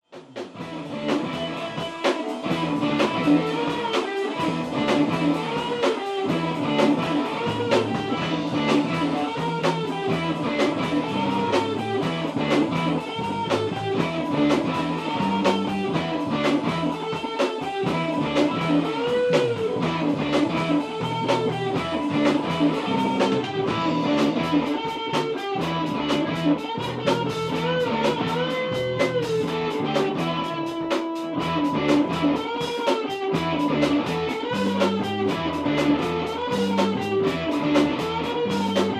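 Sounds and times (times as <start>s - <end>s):
bass riff: 0.4s - 38.9s.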